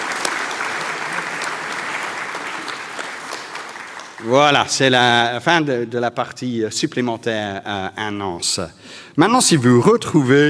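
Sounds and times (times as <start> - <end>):
audience applause: 0.0 - 5.0
speech: 4.2 - 10.4.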